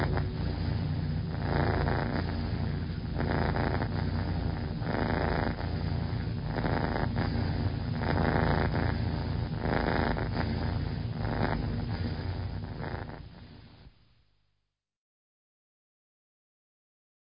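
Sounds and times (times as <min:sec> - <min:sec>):
cat purring: 0:00.0 - 0:13.9.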